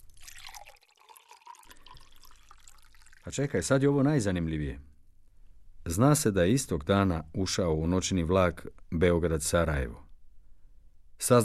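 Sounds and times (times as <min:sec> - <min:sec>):
drink being poured: 0:00.0 - 0:03.9
speech: 0:03.2 - 0:04.9, 0:05.9 - 0:10.0, 0:11.2 - 0:11.4.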